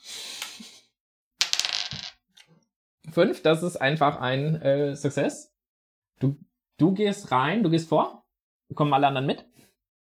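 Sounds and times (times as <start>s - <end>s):
dice rolled on a table: 1.4s - 2.2s
speech: 3.2s - 5.5s, 6.2s - 9.5s.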